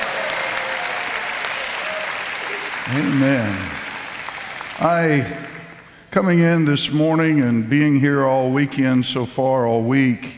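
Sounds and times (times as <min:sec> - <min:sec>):
audience clapping hands in praise: 0:00.0 - 0:05.9
speech: 0:02.9 - 0:03.8, 0:04.8 - 0:05.5, 0:06.1 - 0:10.3.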